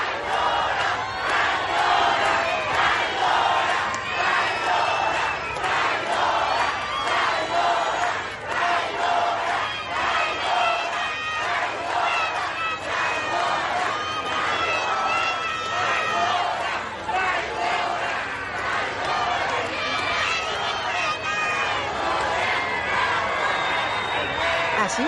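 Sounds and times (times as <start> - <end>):
large protest crowd shouting and chanting against the governor: 0.0 - 25.0.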